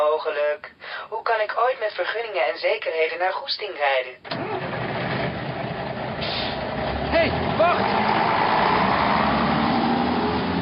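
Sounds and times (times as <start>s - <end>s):
speech: 0.2s - 4.6s, 7.1s - 8.2s
bus engine running as it drives off: 4.3s - 10.6s.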